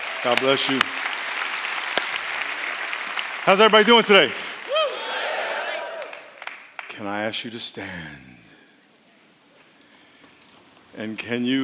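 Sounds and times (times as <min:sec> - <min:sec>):
audience applause: 0:00.0 - 0:06.9
speech: 0:00.2 - 0:01.3, 0:03.4 - 0:04.5, 0:07.0 - 0:08.4, 0:11.0 - 0:11.6.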